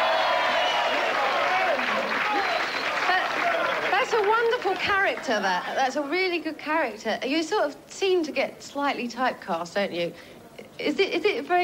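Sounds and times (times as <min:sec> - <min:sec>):
audience applause: 0:00.0 - 0:05.8
speech: 0:04.6 - 0:11.6.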